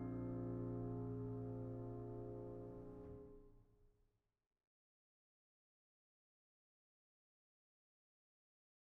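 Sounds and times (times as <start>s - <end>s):
classical piano piece: 0.0s - 3.4s.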